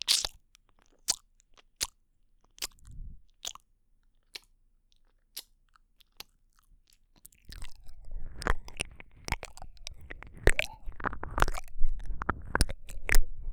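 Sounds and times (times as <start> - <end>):
kissing and licking: 0.1 - 0.3, 7.5 - 13.5.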